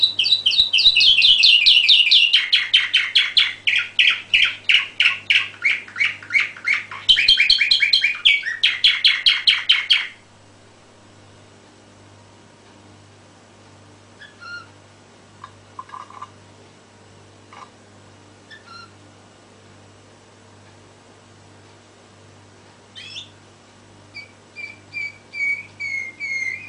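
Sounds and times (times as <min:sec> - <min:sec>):
canary song: 0:00.0 - 0:10.3, 0:14.1 - 0:14.8, 0:18.4 - 0:19.0, 0:22.9 - 0:23.4, 0:24.0 - 0:26.6.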